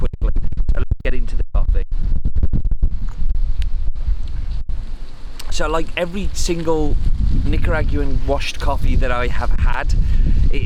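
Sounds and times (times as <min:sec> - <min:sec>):
wind buffeting a camera microphone outdoors on a chilly day: 0:00.0 - 0:10.6
speech: 0:05.6 - 0:10.6.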